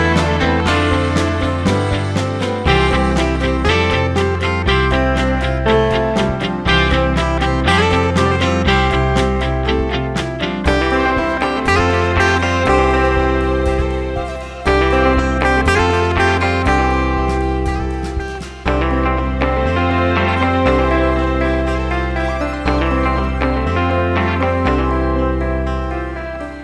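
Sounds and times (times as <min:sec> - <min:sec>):
guitar riff: 0:00.0 - 0:26.6.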